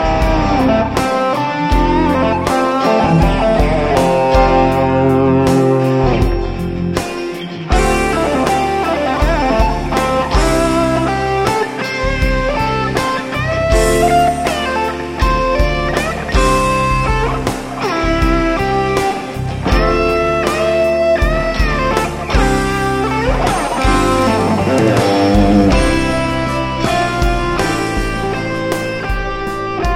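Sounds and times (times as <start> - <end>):
pop ballad solo: 0.0 - 29.9.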